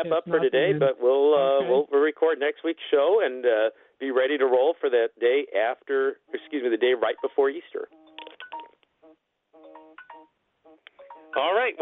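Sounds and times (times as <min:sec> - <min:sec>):
speech: 0:00.0 - 0:08.0, 0:11.3 - 0:11.8
phone alarm electronic beeps and tones: 0:07.2 - 0:08.8, 0:09.6 - 0:11.6.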